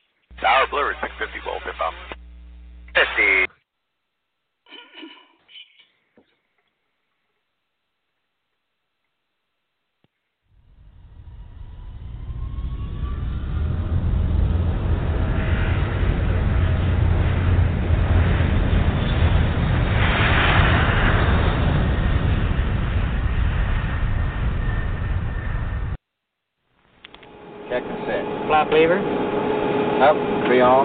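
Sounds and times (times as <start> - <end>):
speech: 0.4 - 2.2
Eastern Air Lines whisper jet airliner taking off: 10.6 - 26.0, 27.2 - 30.8.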